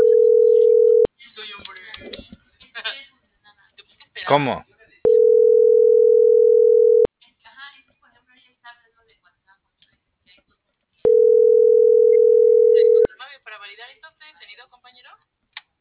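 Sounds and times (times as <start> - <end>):
telephone line tone before voicemail service: 0.0 - 1.1, 5.1 - 7.1, 11.1 - 13.1
speech: 4.3 - 4.7.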